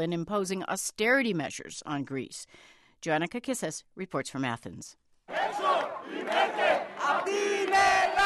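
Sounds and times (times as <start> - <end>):
speech: 0.0 - 5.0
large crowd chanting slogans: 5.3 - 8.2.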